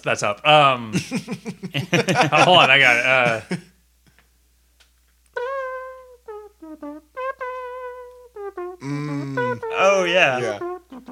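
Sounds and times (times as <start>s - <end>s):
speech: 0.0s - 3.7s, 8.8s - 10.7s
laughter: 1.0s - 3.6s
voice imitating a trumpet: 5.4s - 11.1s.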